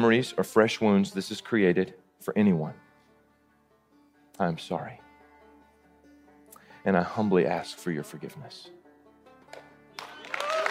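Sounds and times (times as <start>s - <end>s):
speech: 0.0s - 2.8s, 4.4s - 5.0s, 6.8s - 8.8s
audience applause, standing ovation: 9.5s - 10.6s.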